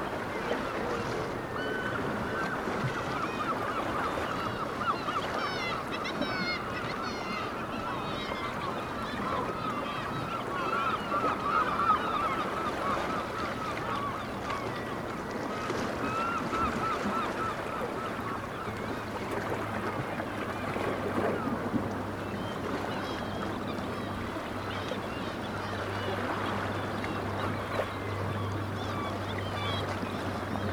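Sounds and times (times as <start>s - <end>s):
black-legged kittiwakes calling: 0.1s - 30.7s.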